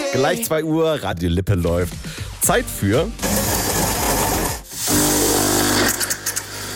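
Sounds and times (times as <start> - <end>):
speech: 0.2 - 3.4
coffee machine buzzing while brewing coffee: 3.2 - 6.7.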